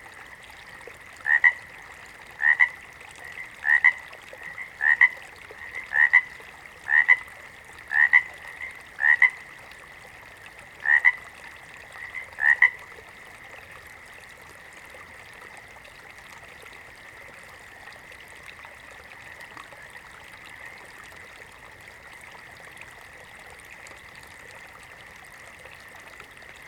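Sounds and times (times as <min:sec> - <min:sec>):
water frog croaking: 0:01.2 - 0:01.7, 0:02.4 - 0:09.5, 0:10.8 - 0:11.3, 0:12.0 - 0:12.9.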